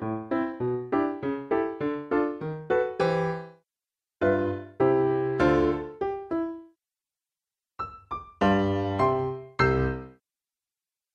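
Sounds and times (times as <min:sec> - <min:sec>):
piano: 0:00.0 - 0:03.6, 0:04.2 - 0:06.8, 0:07.8 - 0:10.2.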